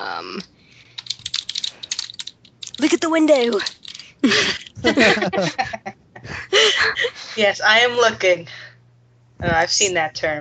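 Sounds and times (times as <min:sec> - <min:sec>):
typing on a computer keyboard: 0:00.9 - 0:04.8
speech: 0:02.8 - 0:05.7, 0:06.8 - 0:08.6, 0:09.4 - 0:10.3
laughter: 0:04.2 - 0:07.4.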